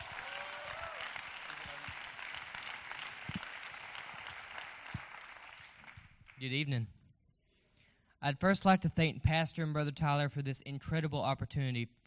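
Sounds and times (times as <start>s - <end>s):
audience applause, hand clapping: 0.0s - 6.0s
speech: 6.4s - 7.0s, 8.2s - 12.0s.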